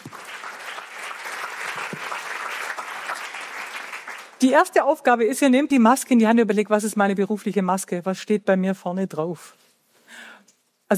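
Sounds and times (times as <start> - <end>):
audience applause: 0.0 - 4.4
speech: 4.4 - 9.6.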